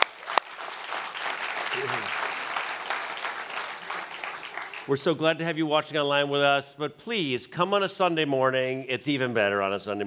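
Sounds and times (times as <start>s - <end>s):
audience applause during a church service: 0.0s - 5.2s
speech: 1.8s - 2.2s, 4.9s - 10.0s.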